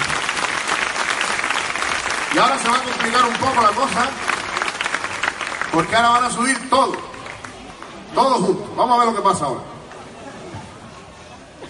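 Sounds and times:
applause for children: 0.0s - 8.2s
speech: 2.4s - 4.3s, 5.7s - 7.1s, 8.1s - 9.7s.

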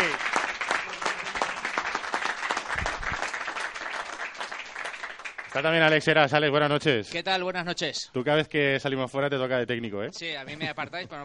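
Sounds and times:
audience applause: 0.0s - 6.1s
speech: 5.6s - 11.2s.

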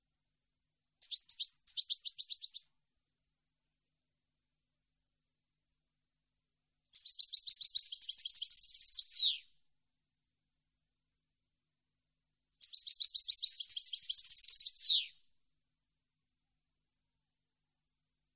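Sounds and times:
European goldfinch twittering song: 1.0s - 2.7s, 6.9s - 9.5s, 12.6s - 15.2s.

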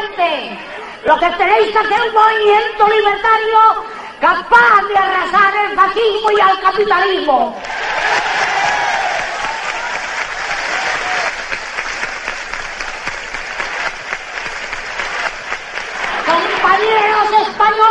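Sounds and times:
speech: 0.2s - 8.2s
crowd applause: 7.6s - 17.6s.

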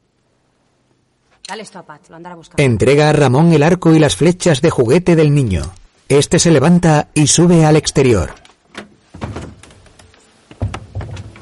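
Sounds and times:
speech: 1.5s - 8.4s
trapdoor pushed open with wooden thunks and clatters: 8.3s - 11.4s.

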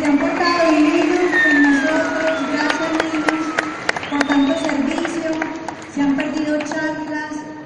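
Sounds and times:
crowd cheering and shouting: 0.0s - 5.0s
crowd applauding: 0.0s - 7.2s.

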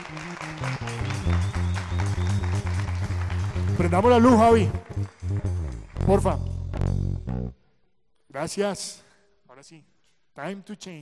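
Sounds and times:
audience applause: 0.0s - 5.4s
speech: 3.8s - 5.1s, 6.1s - 6.5s, 8.4s - 9.0s, 9.6s - 11.0s.

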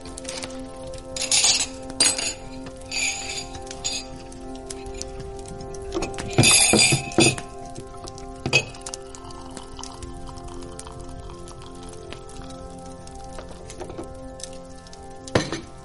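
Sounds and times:
porcelain cups and spoons clinking while tea is prepared: 1.2s - 4.1s, 6.0s - 7.5s.

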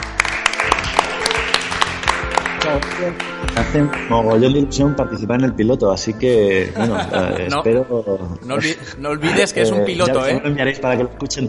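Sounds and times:
audience applause: 0.0s - 4.0s
speech: 2.7s - 11.4s
laughter: 6.6s - 7.7s.

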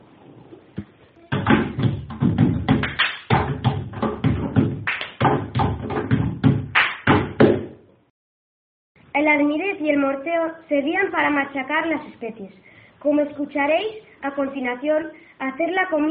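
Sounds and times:
rhythmic knocking from bread dough being kneaded: 0.8s - 7.8s
speech: 9.2s - 16.0s.

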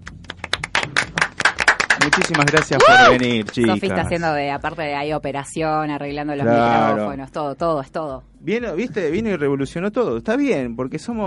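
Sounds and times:
small group applauding in studio: 0.0s - 3.9s
speech: 2.2s - 11.2s.

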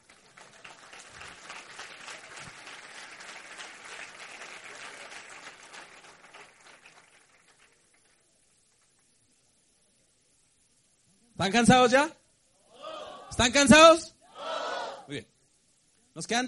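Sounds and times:
audience applause: 0.0s - 8.3s
speech: 11.4s - 12.2s, 13.4s - 14.1s, 15.1s - 15.3s, 16.2s - 16.4s.

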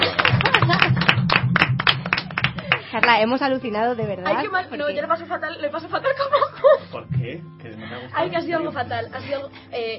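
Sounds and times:
sustained crowd applause: 0.0s - 3.1s
speech: 3.0s - 9.9s.

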